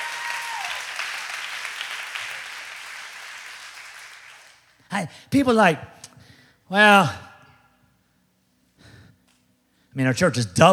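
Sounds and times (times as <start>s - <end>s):
audience clapping: 0.0s - 4.8s
speech: 4.9s - 6.0s, 6.7s - 7.2s, 10.0s - 10.7s.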